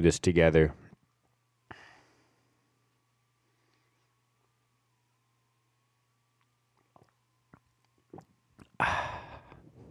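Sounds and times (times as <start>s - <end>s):
faint steady hum: 0.0s - 9.8s
clicks and gulps: 6.4s - 9.6s
person sipping coffee: 6.4s - 9.7s
satisfied exhale: 8.8s - 9.6s.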